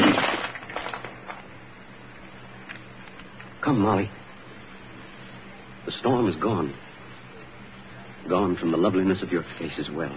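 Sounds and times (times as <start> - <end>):
cup being smashed: 0.0 - 1.3
speech: 3.6 - 4.2, 5.8 - 6.8, 8.2 - 10.1.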